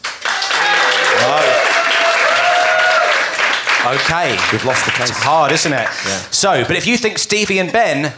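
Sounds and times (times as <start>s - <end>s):
theatre audience applause: 0.0s - 6.6s
voices whooping: 0.3s - 3.3s
speech: 3.8s - 8.1s.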